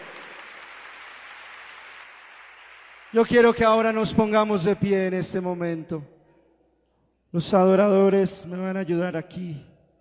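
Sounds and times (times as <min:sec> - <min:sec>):
audience applause: 0:00.0 - 0:03.8
speech: 0:03.1 - 0:06.2, 0:07.3 - 0:09.7.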